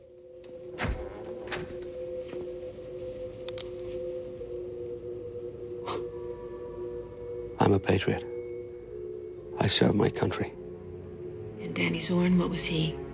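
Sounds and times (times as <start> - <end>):
door being opened: 0.4 - 1.9
speech: 7.8 - 8.3, 9.6 - 10.6, 11.8 - 13.0.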